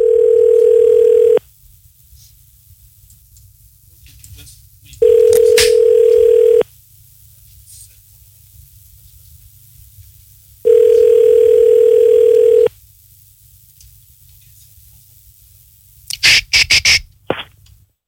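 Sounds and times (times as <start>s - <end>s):
telephone ringback tone: 0.0s - 1.4s, 5.0s - 6.6s, 10.7s - 12.7s.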